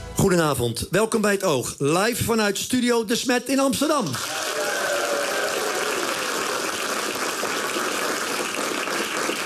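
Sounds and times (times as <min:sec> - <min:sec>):
speech: 0:00.2 - 0:04.5
live studio audience applauding: 0:04.0 - 0:09.4.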